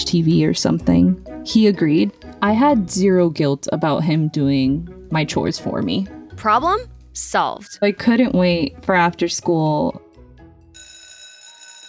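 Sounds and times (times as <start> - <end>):
speech: 0.0 - 10.0
school bell ringing: 10.8 - 11.8.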